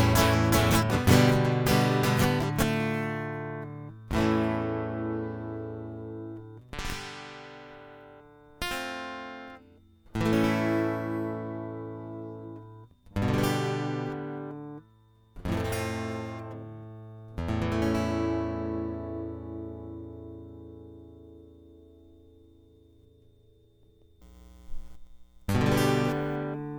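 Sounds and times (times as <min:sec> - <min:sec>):
guitar loop: 0:00.0 - 0:26.7.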